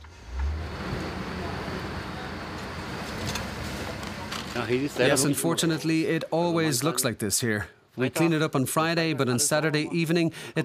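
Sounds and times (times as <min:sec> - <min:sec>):
vehicle driving, turning onto a street: 0:00.0 - 0:05.1
speech: 0:04.6 - 0:10.6.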